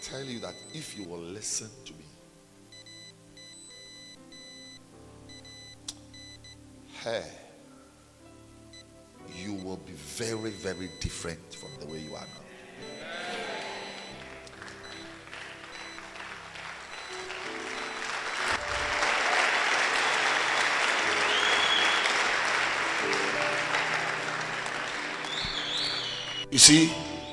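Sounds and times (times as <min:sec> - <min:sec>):
speech: 0:00.0 - 0:02.2, 0:07.0 - 0:07.4, 0:09.3 - 0:13.2, 0:26.6 - 0:27.0
audience hand clapping: 0:13.2 - 0:27.1.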